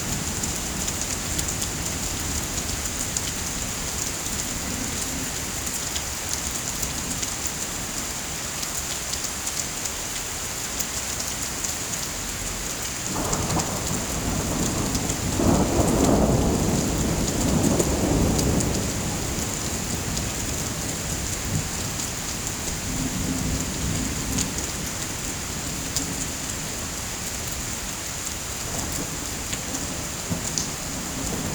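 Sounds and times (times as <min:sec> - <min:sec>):
rain: 0:00.0 - 0:31.5
thunder: 0:13.1 - 0:20.8.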